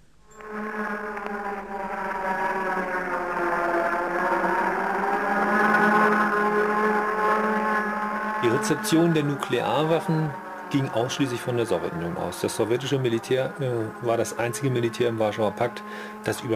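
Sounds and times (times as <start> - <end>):
several city air-raid sirens wailing as nuclear and air-raid alarm: 0.4 - 16.5
speech: 8.7 - 16.5.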